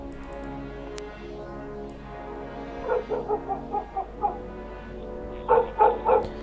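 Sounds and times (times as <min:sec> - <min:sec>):
dogs barking: 0:02.8 - 0:04.4, 0:05.5 - 0:06.4.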